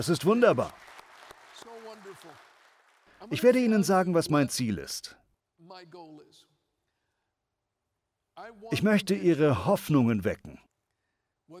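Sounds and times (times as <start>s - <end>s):
speech: 0.0s - 0.9s, 2.1s - 2.5s, 3.2s - 6.5s, 8.4s - 10.7s
audience applause: 0.0s - 3.7s.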